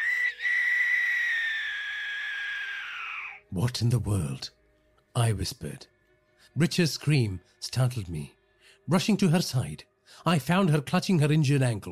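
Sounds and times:
eerie bird call in the distance: 0.0s - 3.4s
speech: 3.6s - 4.6s, 5.2s - 5.9s, 6.5s - 11.9s.

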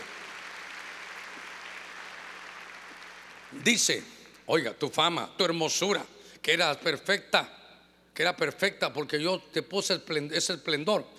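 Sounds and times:
audience clapping loudly: 0.0s - 3.5s
speech: 3.5s - 7.6s, 8.2s - 11.1s.

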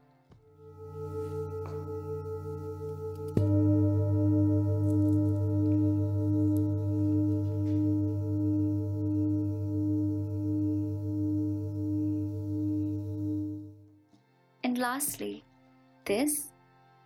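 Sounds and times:
tuning fork ringing: 0.5s - 14.0s
speech: 14.9s - 15.4s, 16.1s - 16.5s.

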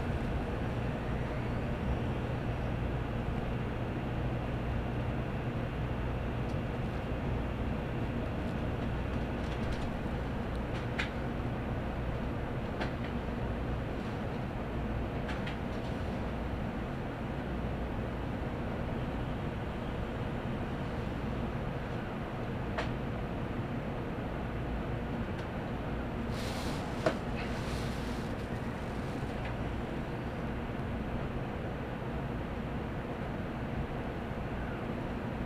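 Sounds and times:
Kodama Shinkansen car rumble from Nagoya toward Toyohashi: 0.0s - 35.4s.

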